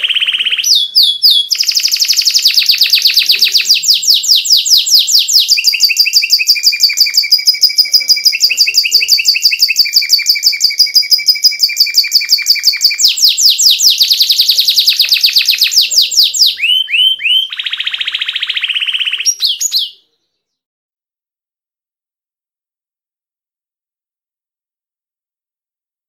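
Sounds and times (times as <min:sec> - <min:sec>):
champion canary singing: 0:00.0 - 0:20.6.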